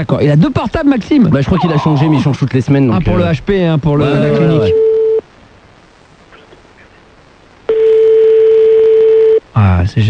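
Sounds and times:
speech: 0:00.0 - 0:04.9, 0:09.8 - 0:10.0
faint hiss: 0:00.0 - 0:10.0
steady single-pitched telephone tone: 0:04.2 - 0:05.2, 0:07.7 - 0:09.5.

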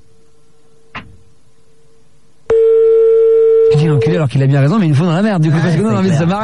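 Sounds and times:
steady low electronic tone: 0:00.0 - 0:06.4
phone call ringing unanswered: 0:02.5 - 0:04.2
speech: 0:03.8 - 0:06.4.

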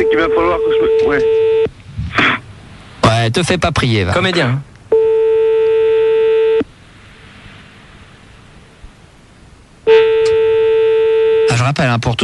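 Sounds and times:
telephone busy signal: 0:00.0 - 0:01.7, 0:04.9 - 0:06.7, 0:09.9 - 0:11.6
speech: 0:00.1 - 0:01.8, 0:03.2 - 0:04.7, 0:11.7 - 0:12.2.

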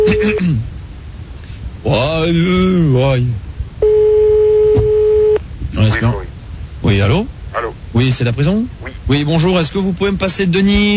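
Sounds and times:
steady mid-pitched telephone line tone: 0:00.0 - 0:00.4, 0:03.8 - 0:05.4
speech: 0:01.8 - 0:04.0, 0:05.8 - 0:10.9.

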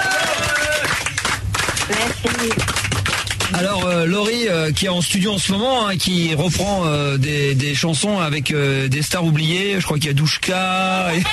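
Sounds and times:
audience applause: 0:00.0 - 0:04.1
speech: 0:02.2 - 0:02.9, 0:03.5 - 0:11.3.

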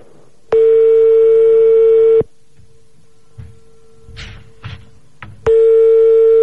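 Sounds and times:
landline telephone ringing tone: 0:00.6 - 0:02.3, 0:05.5 - 0:06.4.

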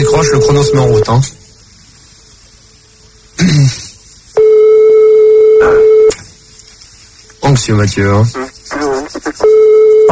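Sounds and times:
telephone ringback tone: 0:00.0 - 0:01.1, 0:04.4 - 0:06.1, 0:09.5 - 0:10.1
speech: 0:00.1 - 0:01.4, 0:03.4 - 0:03.8, 0:07.5 - 0:08.5.

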